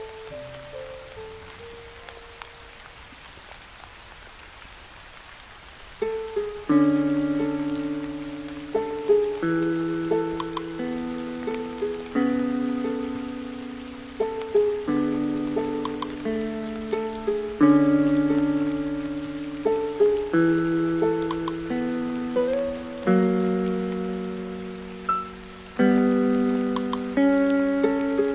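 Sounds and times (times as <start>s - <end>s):
soft steady hiss of rain: 0.0s - 28.3s
mid-pitched melody with sustained chords: 6.7s - 28.3s.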